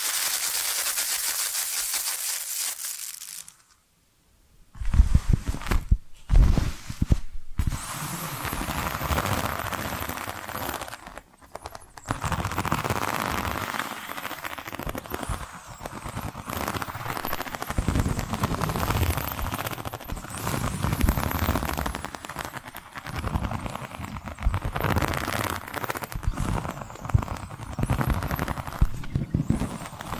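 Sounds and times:
bright steady hiss: 0.0s - 6.4s
tapping and scratching knocks: 4.8s - 30.1s.

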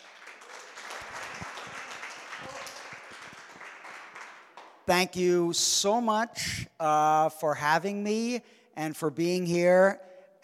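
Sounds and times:
audience applause: 0.0s - 4.8s
speech: 4.9s - 10.1s.

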